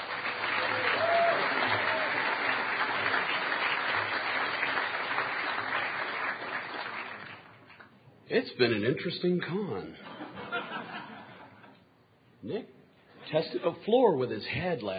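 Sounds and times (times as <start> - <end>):
audience applause: 0.0 - 7.7
speech: 8.3 - 10.1, 12.4 - 14.9
laughter: 10.0 - 11.8.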